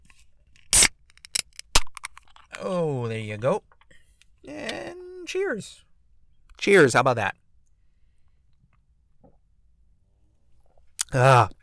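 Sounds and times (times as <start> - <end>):
beer being opened with fizzing hiss: 0.7 - 1.9
speech: 2.6 - 3.7, 5.3 - 5.9, 6.6 - 7.4, 11.1 - 11.6.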